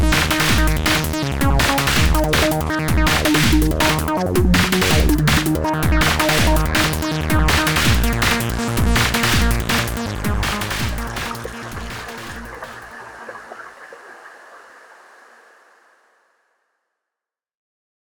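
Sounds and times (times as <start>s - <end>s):
acid funk music: 0.0s - 12.9s.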